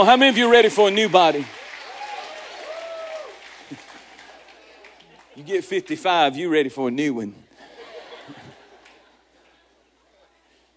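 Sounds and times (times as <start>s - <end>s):
speech: 0.0s - 1.6s, 5.4s - 7.4s
crowd clapping: 0.0s - 6.2s, 8.7s - 9.6s
laughter: 3.6s - 5.7s, 7.6s - 9.9s.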